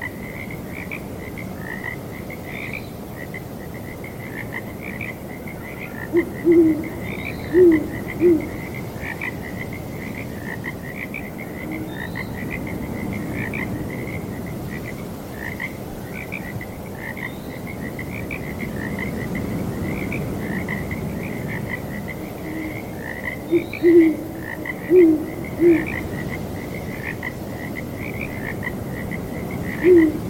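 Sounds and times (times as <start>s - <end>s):
frog chorus croaking: 0.0s - 30.2s
wind: 0.0s - 30.2s
owl hooting: 6.1s - 8.6s, 23.5s - 26.1s, 29.8s - 30.2s.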